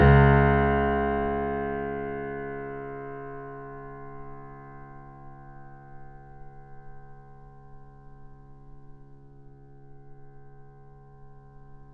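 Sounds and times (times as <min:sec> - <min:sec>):
grand piano C sharp note: 0:00.0 - 0:04.4.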